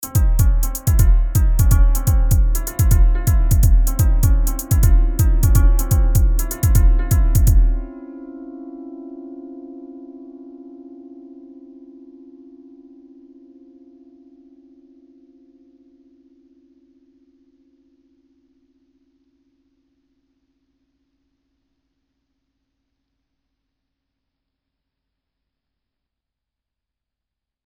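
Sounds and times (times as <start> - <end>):
beat: 0.0 - 7.9.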